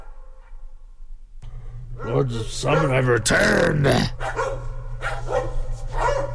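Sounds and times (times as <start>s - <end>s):
dogs barking: 2.0s - 3.1s, 4.1s - 6.3s
speech: 2.0s - 4.6s.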